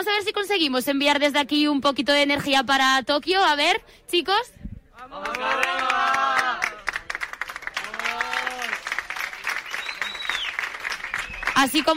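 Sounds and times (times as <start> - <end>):
speech: 0.0 - 6.8, 11.6 - 11.9
audience applauding: 5.2 - 11.9.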